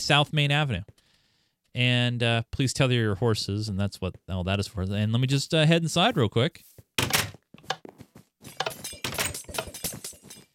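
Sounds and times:
speech: 0:00.0 - 0:00.9, 0:01.8 - 0:07.0
video game potion bottles breaking: 0:08.5 - 0:10.5.

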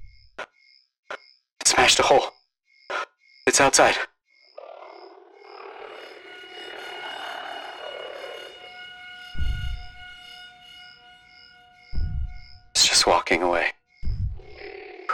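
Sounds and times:
speech: 0:01.9 - 0:02.4, 0:03.6 - 0:04.1
low drone of spaceship oxygen alarm: 0:05.2 - 0:13.0
spaceship oxygen alarm pulsing beeps: 0:05.4 - 0:13.0
heavy low thud: 0:09.4 - 0:10.1, 0:11.9 - 0:12.7, 0:14.0 - 0:14.6.

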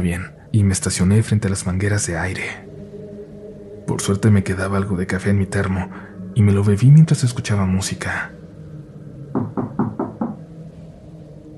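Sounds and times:
speech: 0:00.0 - 0:02.7, 0:04.0 - 0:08.4
dispatcher knocking on a car window: 0:09.4 - 0:10.4.

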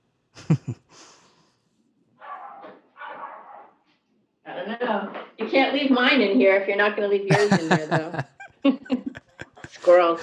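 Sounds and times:
laughter: 0:00.4 - 0:01.1, 0:07.3 - 0:10.2
speech: 0:00.5 - 0:00.8, 0:05.5 - 0:09.0, 0:09.9 - 0:10.2
dog barking: 0:02.2 - 0:03.8.

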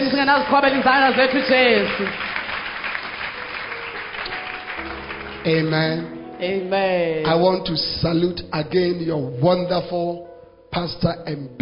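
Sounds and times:
audience clapping: 0:00.0 - 0:06.1
speech: 0:00.2 - 0:02.2, 0:05.4 - 0:11.6.

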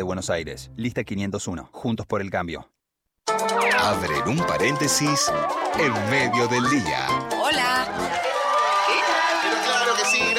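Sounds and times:
speech: 0:00.0 - 0:02.8, 0:03.4 - 0:08.1
recorded applause: 0:03.7 - 0:10.3.

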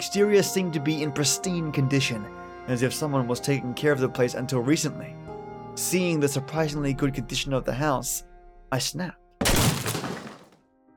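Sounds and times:
speech: 0:00.0 - 0:09.8
door being kicked down: 0:09.4 - 0:10.6.

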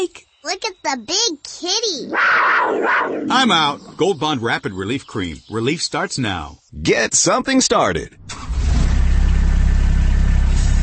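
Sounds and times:
speech: 0:00.0 - 0:08.4
Kubota RTV utility vehicle engine idling: 0:08.3 - 0:10.8.

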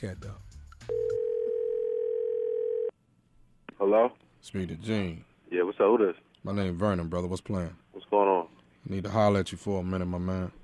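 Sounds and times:
speech: 0:00.0 - 0:00.9, 0:03.8 - 0:10.6
telephone dial tone: 0:00.9 - 0:02.9.

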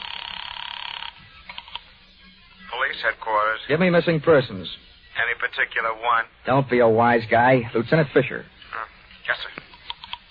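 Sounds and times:
buzzing pulsing telephone line tone of a five-cent call: 0:00.0 - 0:05.6
speech: 0:02.9 - 0:09.6.

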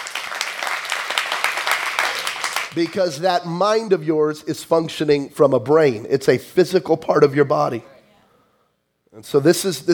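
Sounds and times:
audience clapping: 0:00.0 - 0:03.1
speech: 0:02.8 - 0:07.9, 0:09.2 - 0:09.9.

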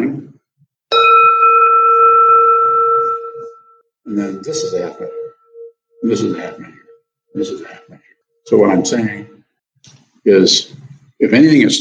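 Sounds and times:
bell struck and ringing: 0:00.9 - 0:07.9
speech: 0:04.2 - 0:05.2, 0:06.0 - 0:09.3, 0:10.3 - 0:11.7.

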